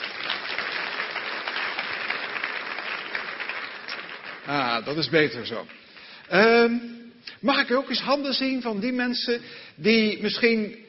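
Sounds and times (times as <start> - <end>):
audience applause: 0.0 - 6.4
speech: 4.5 - 10.8.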